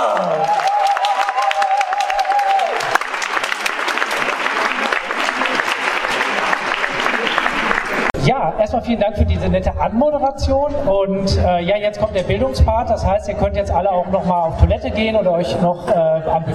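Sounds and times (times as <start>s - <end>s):
audience applause: 0.0s - 8.2s
speech: 8.5s - 16.5s.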